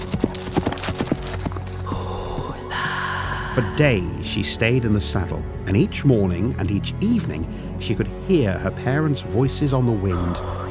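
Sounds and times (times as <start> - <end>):
horse hooves clip-clopping as rider departs: 0.0 - 2.7
speech: 3.6 - 10.6.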